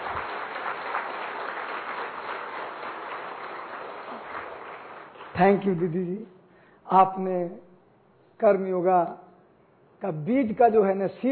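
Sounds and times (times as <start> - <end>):
audience applause: 0.0 - 5.5
speech: 5.4 - 7.7, 8.4 - 9.2, 10.0 - 11.3.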